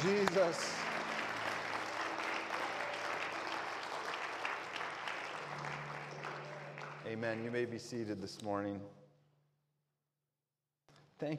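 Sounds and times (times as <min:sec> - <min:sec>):
speech: 0:00.0 - 0:00.8, 0:07.1 - 0:09.0, 0:11.2 - 0:11.3
audience applause hand clapping: 0:00.0 - 0:08.0.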